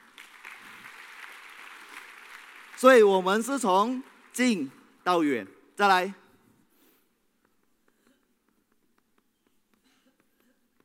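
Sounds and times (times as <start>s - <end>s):
audience applause: 0.0s - 4.6s
speech: 2.8s - 6.2s.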